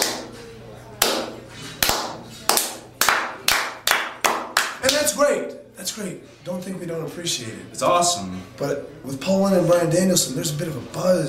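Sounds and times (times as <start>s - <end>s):
single pair of hands clapping: 0.0s - 0.4s, 1.0s - 5.2s
speech: 5.1s - 11.2s.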